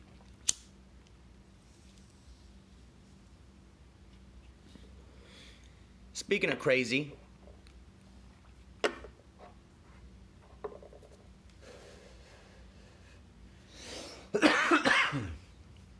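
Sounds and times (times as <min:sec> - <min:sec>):
speech: 0:06.3 - 0:07.2
person coughing after first cigarette drag of the morning: 0:14.3 - 0:15.4.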